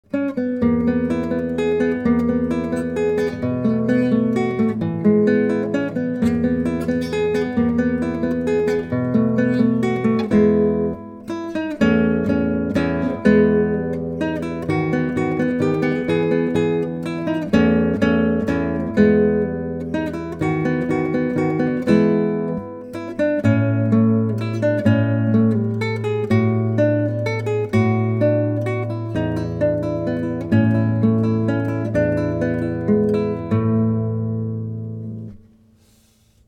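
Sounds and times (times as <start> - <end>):
guitar playing moderato: 0.0 - 36.3.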